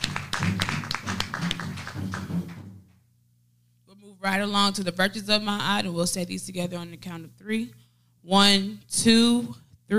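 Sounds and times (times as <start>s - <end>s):
group of people clapping hands: 0.0s - 2.7s
speech: 4.2s - 9.9s.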